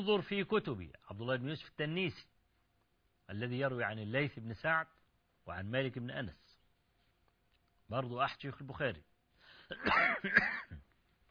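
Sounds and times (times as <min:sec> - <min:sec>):
speech: 0:00.0 - 0:02.3, 0:03.3 - 0:06.4, 0:07.9 - 0:09.1, 0:09.7 - 0:10.8
man coughing and clearing his throat from dusty Cairo air: 0:09.7 - 0:10.9.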